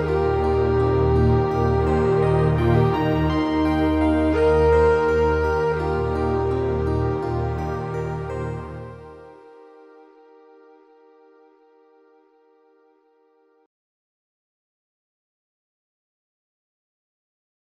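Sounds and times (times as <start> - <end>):
meditation music: 0.0 - 13.6.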